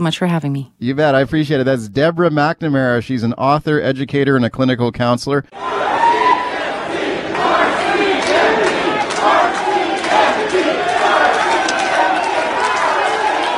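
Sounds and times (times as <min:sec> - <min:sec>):
speech: 0:00.0 - 0:06.0
crowd shouting at a Surrey City Hall meeting: 0:05.5 - 0:13.5.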